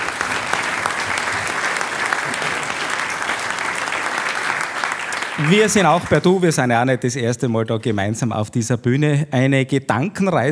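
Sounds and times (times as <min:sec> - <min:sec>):
audience applause: 0:00.0 - 0:06.6
speech: 0:05.4 - 0:10.5.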